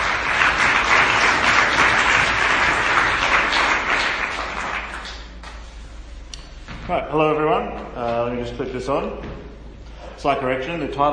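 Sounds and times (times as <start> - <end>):
audience applause welcoming an astrophysicist to lecture: 0.0 - 5.5
speech: 7.1 - 7.7, 8.3 - 9.4, 10.2 - 11.1.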